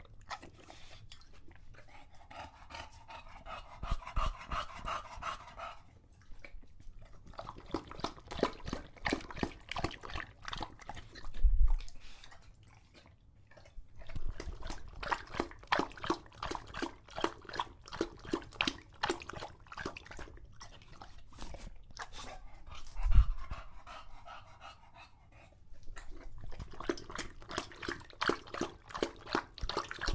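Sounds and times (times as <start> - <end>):
English Bulldog lapping water: 0.0 - 30.1
English Bulldog breathing heavily: 1.8 - 6.1, 21.0 - 26.0.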